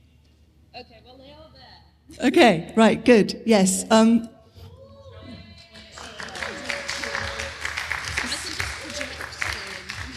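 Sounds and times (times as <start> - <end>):
speech: 0.8 - 4.3
audience clapping: 5.7 - 10.1.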